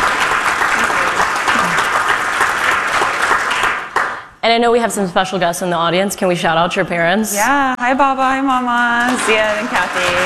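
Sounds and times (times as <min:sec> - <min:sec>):
audience applause: 0:00.0 - 0:04.3, 0:09.1 - 0:10.2
speech: 0:04.4 - 0:10.2.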